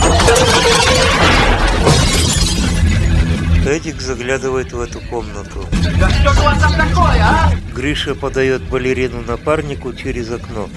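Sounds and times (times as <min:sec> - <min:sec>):
furniture breaking as a man falls onto it: 0:00.0 - 0:02.9
speech: 0:03.7 - 0:10.7.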